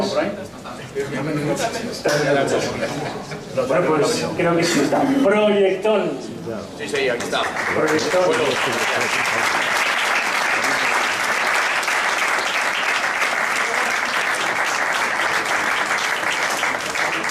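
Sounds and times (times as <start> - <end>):
speech: 0.2 - 9.8
sustained applause from a sizable audience: 6.9 - 17.2.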